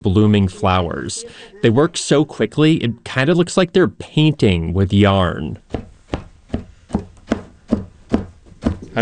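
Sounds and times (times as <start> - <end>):
speech: 0.1 - 5.9
big combs stabbing the end of a wool rug during Kyrgyz rug weaving: 5.7 - 8.9.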